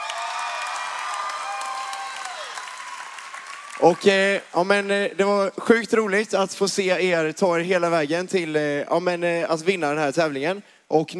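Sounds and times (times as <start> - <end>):
whistles and whoops: 0.0 - 3.2
crowd applause for the winning team: 0.0 - 5.2
speech: 3.8 - 11.1.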